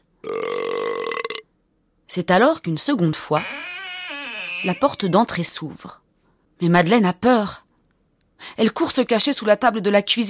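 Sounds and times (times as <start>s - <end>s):
huge garlic burp: 0.2s - 1.5s
speech: 2.1s - 3.7s, 4.6s - 6.0s, 6.6s - 7.6s, 8.4s - 10.2s.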